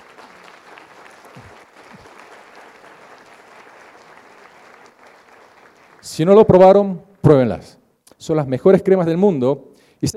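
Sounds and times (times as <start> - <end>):
audience applause: 0.0 - 6.6
speech: 6.0 - 10.1.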